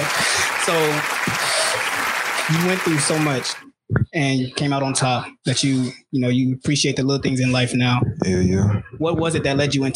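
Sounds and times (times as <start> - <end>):
laughter: 0.0 - 3.6
round of applause: 0.0 - 3.6
speech: 0.7 - 1.4, 2.5 - 9.9.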